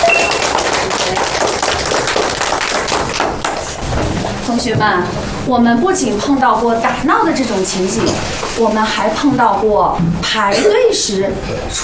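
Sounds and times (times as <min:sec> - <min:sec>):
room full of children clapping in a classroom: 0:00.0 - 0:04.4
speech: 0:04.6 - 0:11.8.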